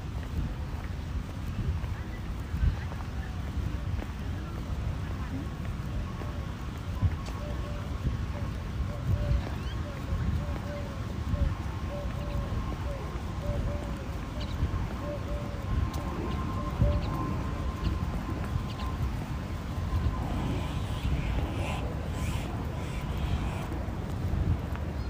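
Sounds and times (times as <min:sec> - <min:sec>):
steady low rumble of a public transport ride: 0:00.0 - 0:25.0
faint voices murmuring: 0:01.9 - 0:25.0
thin wavering whine: 0:11.9 - 0:24.1.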